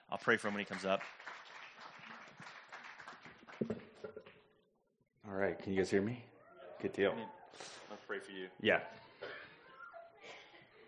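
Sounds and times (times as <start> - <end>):
audience applause: 0.0 - 3.8
speech: 0.1 - 1.4, 5.3 - 9.1.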